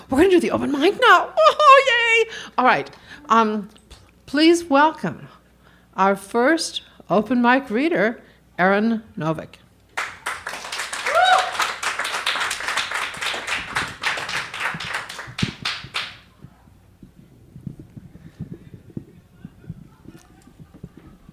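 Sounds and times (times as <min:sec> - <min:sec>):
speech: 0:00.1 - 0:05.4, 0:06.0 - 0:09.6
audience applause: 0:10.0 - 0:16.3
whoop: 0:11.0 - 0:11.7
quiet murmuring and soft voices: 0:16.2 - 0:21.3.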